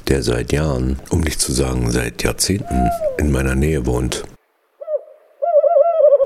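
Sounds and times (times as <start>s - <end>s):
speech: 0.1s - 4.3s
owl hooting: 2.6s - 3.2s, 4.8s - 6.2s.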